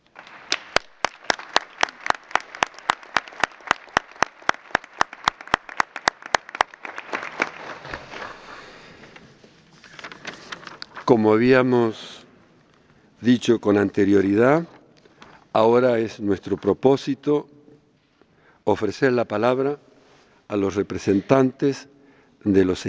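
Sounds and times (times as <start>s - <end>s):
assembly applause: 0.0s - 8.4s
speech: 11.1s - 12.2s, 13.2s - 14.8s, 15.6s - 17.5s, 18.7s - 19.9s, 20.5s - 22.8s.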